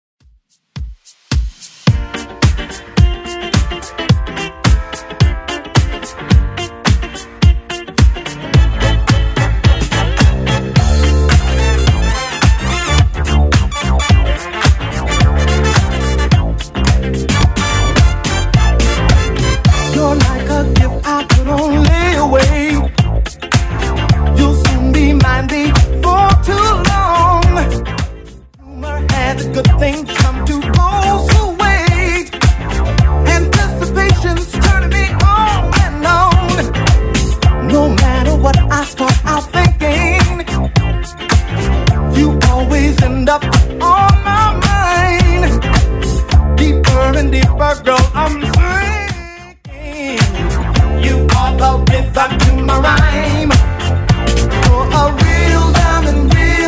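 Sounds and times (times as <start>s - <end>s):
80s beat: 0.2s - 56.6s.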